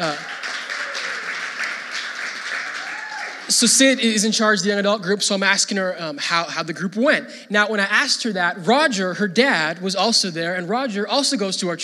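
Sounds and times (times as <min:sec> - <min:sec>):
speech: 0:00.0 - 0:00.3, 0:03.6 - 0:11.8
crowd applause: 0:00.0 - 0:04.0.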